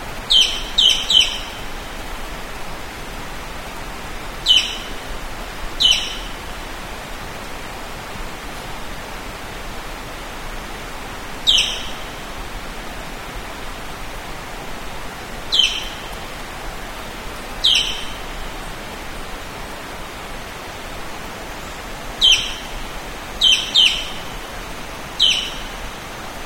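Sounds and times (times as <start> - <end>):
hiss: 0.0 - 26.4
high bird chirps: 0.3 - 1.6, 4.5 - 5.0, 5.8 - 6.3, 11.5 - 12.0, 15.5 - 16.1, 17.6 - 18.2, 22.2 - 22.7, 23.4 - 24.2, 25.2 - 25.8.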